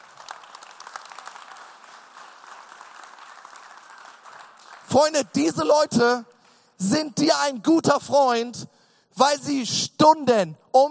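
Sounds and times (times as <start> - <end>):
audience applause: 0.0 - 5.2
speech: 4.9 - 10.8.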